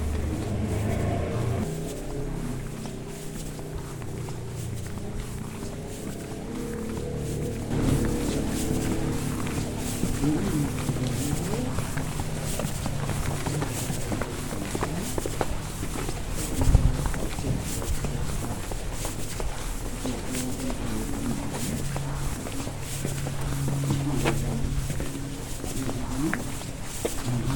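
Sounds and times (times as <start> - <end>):
footsteps: 0.0 - 27.5
low hum: 0.0 - 27.5
outdoor low rumble in Cadaquès: 0.0 - 27.5
voices in Cadaquès: 0.0 - 27.5.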